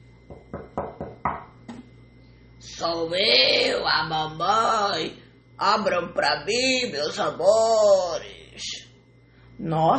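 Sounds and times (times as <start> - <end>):
knocking on a door: 0.3 - 1.8
speech: 2.8 - 8.3, 9.6 - 9.9.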